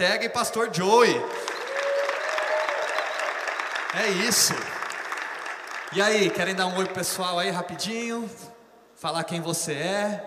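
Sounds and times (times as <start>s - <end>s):
speech: 0.0s - 1.6s, 3.9s - 4.8s, 5.9s - 10.2s
audience applause: 1.3s - 7.2s.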